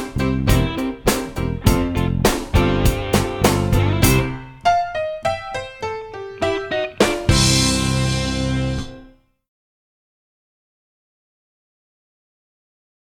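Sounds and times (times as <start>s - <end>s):
minor key music with descending bass: 0.0s - 9.2s.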